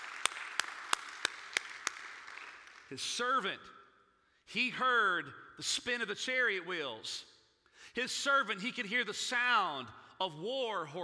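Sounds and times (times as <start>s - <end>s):
audience hand clapping: 0.0s - 3.0s
speech: 2.9s - 3.8s, 4.5s - 7.3s, 7.9s - 11.0s.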